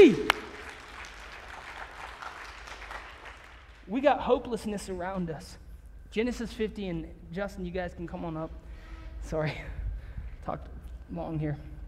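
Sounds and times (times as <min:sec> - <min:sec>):
church audience applauding: 0:00.0 - 0:03.9
speech: 0:03.9 - 0:08.6, 0:09.2 - 0:09.8, 0:10.4 - 0:11.7.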